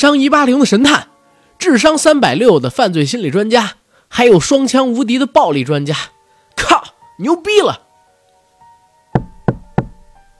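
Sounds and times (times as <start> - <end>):
speech: 0.0 - 7.8
knocking on a door: 9.2 - 10.2.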